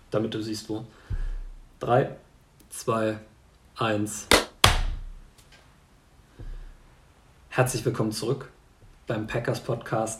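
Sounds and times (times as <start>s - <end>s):
speech: 0.1s - 1.2s, 1.8s - 4.4s, 7.6s - 8.5s, 9.1s - 10.1s
hand clap to mark an audio spike: 4.3s - 5.0s.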